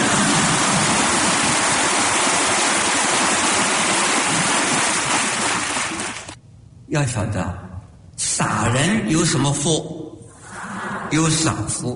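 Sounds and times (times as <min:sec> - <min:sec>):
crowd clapping: 0:00.0 - 0:06.4
speech: 0:06.9 - 0:07.7, 0:08.3 - 0:10.0, 0:11.1 - 0:11.9.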